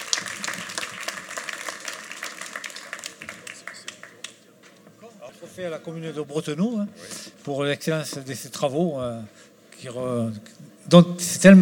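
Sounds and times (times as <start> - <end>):
audience applause: 0.0 - 4.4
speech: 5.5 - 11.6.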